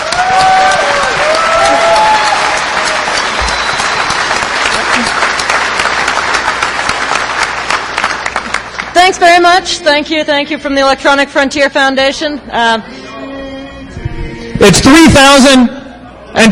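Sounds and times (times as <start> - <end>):
audience round of applause: 0.0 - 9.0
speech: 9.1 - 13.0, 14.6 - 15.8, 16.4 - 16.5.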